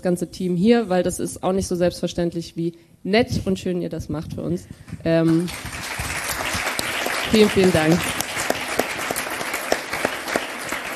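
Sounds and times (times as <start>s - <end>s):
speech: 0.0s - 6.0s, 7.3s - 8.2s
live audience applause: 5.5s - 10.9s.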